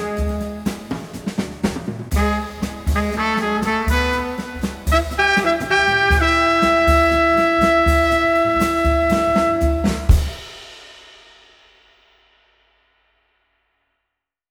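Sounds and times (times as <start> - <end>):
chill street brass combo playing: 0.0 - 10.7.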